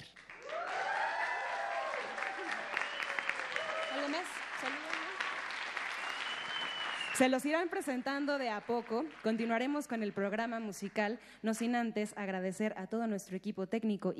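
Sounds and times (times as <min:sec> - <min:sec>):
concert audience applause: 0:00.0 - 0:09.9
speech: 0:04.1 - 0:05.0, 0:07.2 - 0:14.1.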